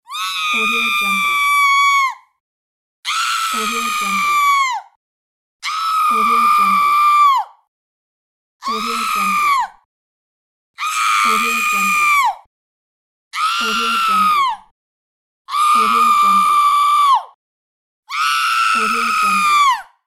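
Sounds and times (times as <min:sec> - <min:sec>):
woman screaming: 0:00.0 - 0:02.3, 0:03.1 - 0:04.9, 0:05.6 - 0:07.6, 0:08.6 - 0:09.8, 0:10.8 - 0:12.4, 0:13.4 - 0:14.6, 0:15.5 - 0:17.4, 0:18.1 - 0:19.9.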